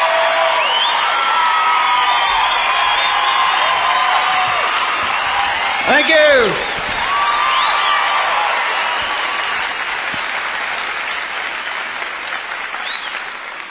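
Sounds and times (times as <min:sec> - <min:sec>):
audience members yelling: 0:00.0 - 0:09.5
audience applause: 0:00.0 - 0:13.6.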